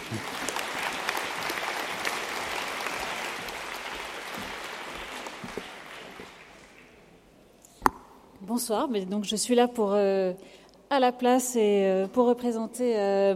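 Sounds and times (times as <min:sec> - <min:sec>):
audience applause: 0:00.0 - 0:07.0
speech: 0:00.1 - 0:00.3, 0:08.6 - 0:13.3.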